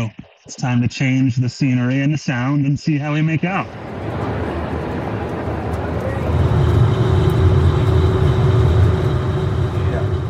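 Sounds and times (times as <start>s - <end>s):
speech: 0.0s - 4.0s
ferry engine noise on board: 3.5s - 10.2s.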